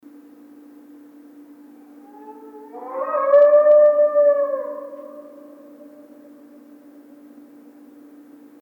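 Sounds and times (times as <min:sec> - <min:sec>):
distant muffled wolf howl: 0:01.5 - 0:07.4.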